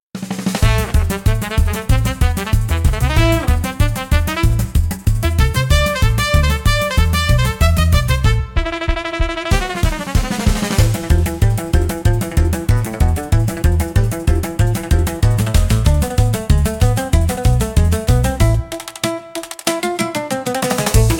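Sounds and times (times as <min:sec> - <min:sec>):
upbeat carnival music: 0:00.2 - 0:21.1.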